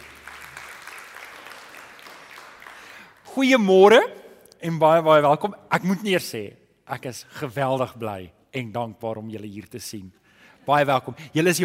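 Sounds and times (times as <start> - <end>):
audience hand clapping: 0.0 - 3.3
speech: 3.4 - 11.6.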